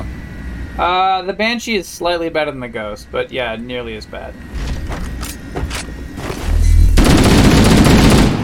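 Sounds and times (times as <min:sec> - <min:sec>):
speech: 0:00.8 - 0:05.1
low rumble: 0:04.5 - 0:07.4
video game gunshots: 0:06.7 - 0:08.4
video game rapid automatic fire: 0:07.0 - 0:08.4.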